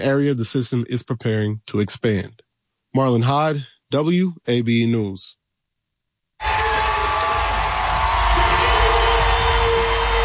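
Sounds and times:
speech: 0:00.0 - 0:05.4
large arena crowd cheering wildly: 0:06.4 - 0:10.2.

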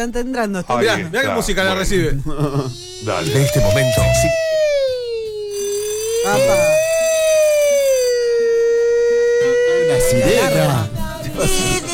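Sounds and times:
speech: 0:00.0 - 0:04.5, 0:06.2 - 0:06.9, 0:09.9 - 0:11.8
alarm siren wail: 0:02.7 - 0:10.9.

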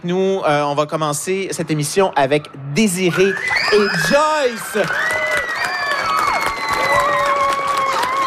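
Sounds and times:
speech: 0:00.0 - 0:05.2
school audience clapping: 0:03.2 - 0:08.2.

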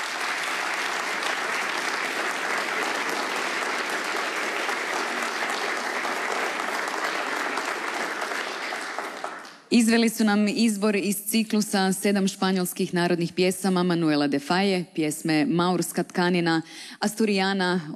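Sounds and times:
concert applause for an opera singer and a young guitarist: 0:00.0 - 0:09.7
speech: 0:09.7 - 0:17.9.

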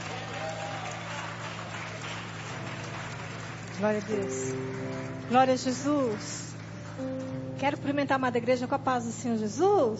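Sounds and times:
audience applauding: 0:00.0 - 0:07.6
speech: 0:03.8 - 0:09.9.

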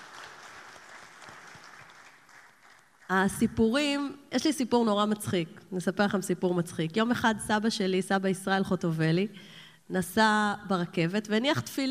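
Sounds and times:
audience applause: 0:00.0 - 0:03.1
speech: 0:03.1 - 0:11.8.

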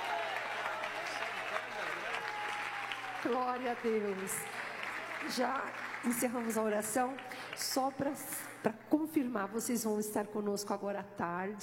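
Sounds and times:
audience applause: 0:00.0 - 0:08.5
speech: 0:03.2 - 0:04.6, 0:05.2 - 0:11.6.

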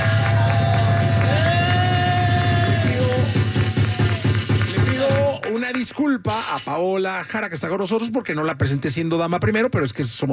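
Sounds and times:
audience applause: 0:00.0 - 0:06.0
speech: 0:06.0 - 0:10.3.

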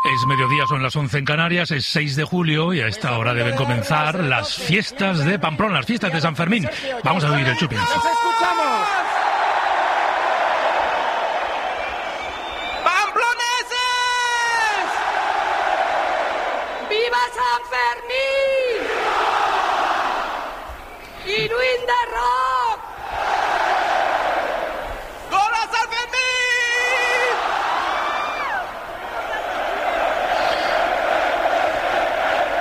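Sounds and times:
speech: 0:00.1 - 0:09.1
large crowd roaring in a town square: 0:07.1 - 0:32.5
crowd chanting and shouting rhythmically: 0:08.7 - 0:12.9, 0:14.7 - 0:17.1, 0:18.7 - 0:20.9, 0:22.8 - 0:25.3, 0:26.9 - 0:32.5.

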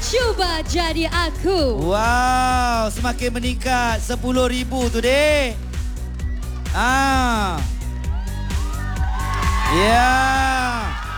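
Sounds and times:
speech: 0:00.1 - 0:05.6, 0:06.8 - 0:07.7, 0:09.7 - 0:11.0
audience cheering loudly: 0:06.1 - 0:11.1.

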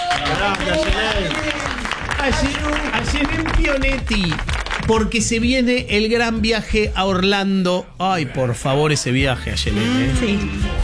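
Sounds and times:
voices calling out and cheering: 0:00.0 - 0:05.1
crowd applauding: 0:00.0 - 0:05.4
speech: 0:00.2 - 0:10.8.

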